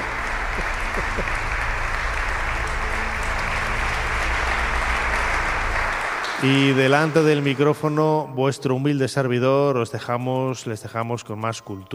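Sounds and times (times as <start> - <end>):
audience applause: 0.0 - 8.0
speech: 6.4 - 11.9.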